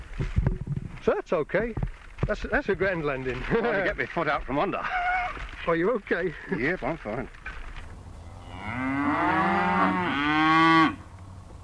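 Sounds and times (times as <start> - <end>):
speech: 1.0 - 5.0, 5.6 - 7.4
cows mooing in a field: 8.2 - 11.0.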